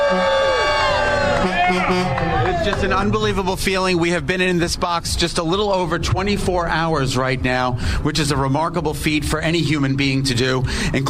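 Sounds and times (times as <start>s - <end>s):
crowd cheering and whooping: 0.0s - 3.6s
speech: 2.6s - 11.0s.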